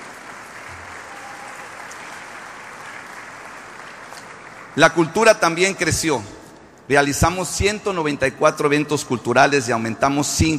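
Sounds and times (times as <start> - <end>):
audience applause: 0.0 - 4.8
speech: 4.8 - 10.5.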